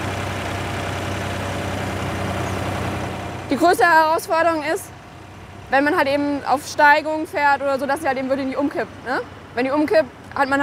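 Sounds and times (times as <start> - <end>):
two-tonne remote-controlled crawler tractor engine running: 0.0 - 10.6
speech: 3.5 - 4.9, 5.7 - 10.6.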